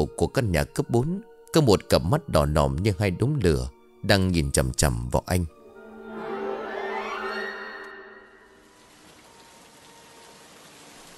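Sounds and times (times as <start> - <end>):
speech: 0.0 - 5.6
low sustained musical drone: 5.5 - 10.2
steady rain pouring down on a cold evening: 8.6 - 11.1.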